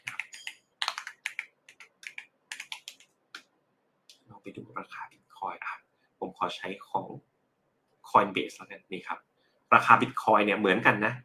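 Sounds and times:
typing BTC into a search on a computer keyboard: 0:00.0 - 0:03.1
speech: 0:04.4 - 0:07.3, 0:08.1 - 0:11.2.

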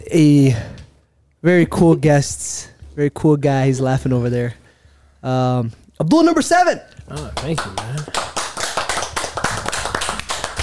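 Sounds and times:
speech: 0:00.1 - 0:00.7, 0:01.4 - 0:04.6, 0:05.2 - 0:08.3
group of people clapping: 0:07.0 - 0:10.6.

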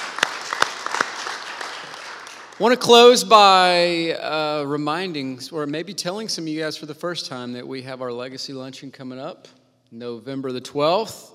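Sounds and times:
audience applause for a speaker at an event: 0:00.0 - 0:02.8
speech: 0:02.6 - 0:11.3.

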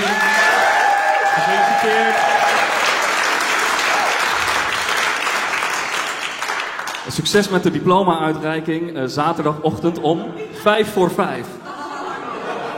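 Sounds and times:
audience applause: 0:00.0 - 0:07.1
speech: 0:07.2 - 0:11.6
laughter: 0:11.6 - 0:12.7.

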